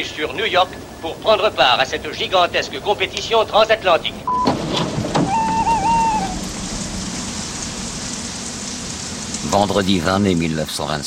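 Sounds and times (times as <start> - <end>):
speech: 0.0 - 4.5, 9.5 - 11.0
light rain pattering: 0.0 - 11.0
thin wavering whistle-like tone: 5.2 - 6.6.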